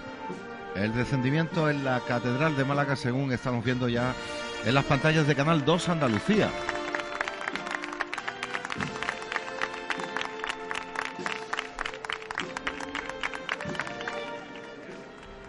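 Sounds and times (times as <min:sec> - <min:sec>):
speech: 0:00.3 - 0:06.7
crowd clapping during procession: 0:05.8 - 0:15.4.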